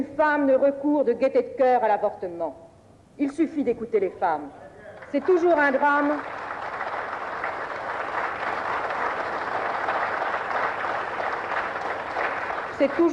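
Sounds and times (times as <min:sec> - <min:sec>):
speech: 0:00.0 - 0:06.4, 0:12.8 - 0:13.1
applause in a parliamentary assembly: 0:04.9 - 0:13.1.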